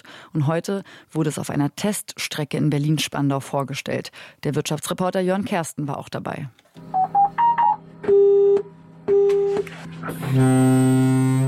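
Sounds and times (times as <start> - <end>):
speech: 0.3 - 7.0, 10.0 - 11.4
busy tone from automated train: 6.9 - 9.7
foghorn from automated train: 10.1 - 11.4.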